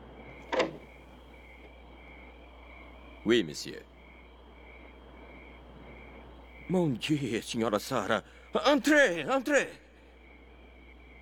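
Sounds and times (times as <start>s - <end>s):
steady low hiss: 0.0s - 11.1s
door opened by a sergeant with a scraping clunk and faint squeak: 0.4s - 1.0s
speech: 3.2s - 3.9s, 6.7s - 9.8s.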